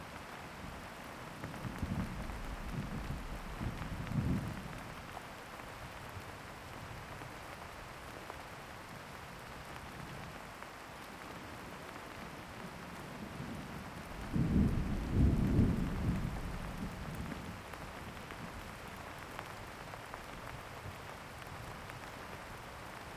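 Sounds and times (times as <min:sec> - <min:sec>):
thunderstorm: 0:01.5 - 0:05.0, 0:13.2 - 0:18.6.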